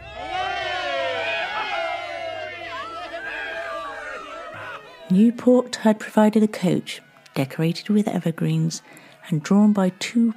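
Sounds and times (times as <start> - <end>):
large crowd cheering and shouting: 0.0 - 10.3
speech: 5.1 - 10.3.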